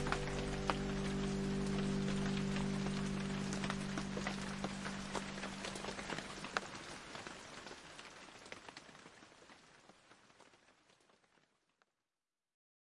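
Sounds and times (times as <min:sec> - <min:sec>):
baby lullaby: 0:00.0 - 0:06.6
piano: 0:00.0 - 0:06.6
rain: 0:00.0 - 0:11.9.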